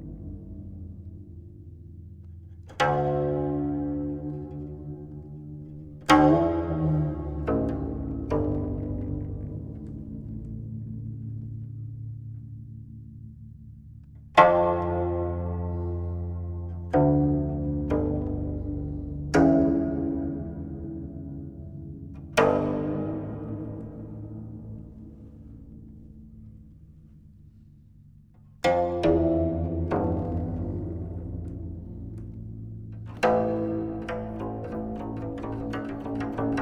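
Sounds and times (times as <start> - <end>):
guzheng playing: 2.7 - 10.1, 14.4 - 26.1, 28.6 - 36.5.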